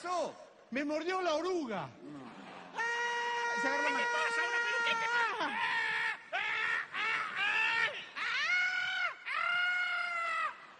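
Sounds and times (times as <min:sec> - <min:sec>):
speech: 0:00.0 - 0:02.2, 0:03.6 - 0:04.5
man screaming in high-pitched bursts: 0:02.8 - 0:10.7.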